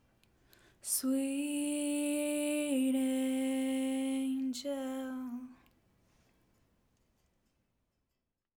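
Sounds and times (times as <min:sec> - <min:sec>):
backing vocals: 0:00.8 - 0:05.6.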